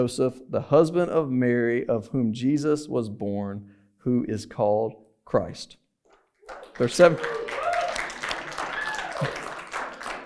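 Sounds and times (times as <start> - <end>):
speech: 0.0 - 5.8, 6.5 - 7.4
small crowd weak half-hearted clapping: 6.2 - 10.2.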